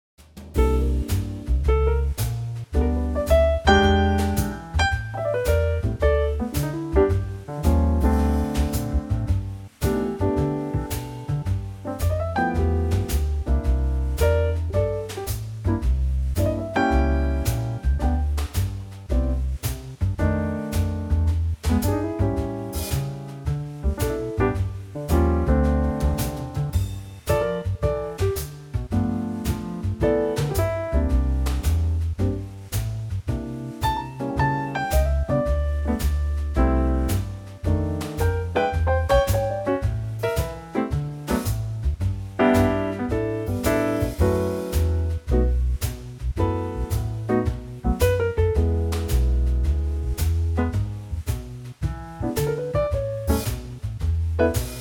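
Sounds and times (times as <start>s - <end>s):
music trio in G: 0.2s - 54.7s.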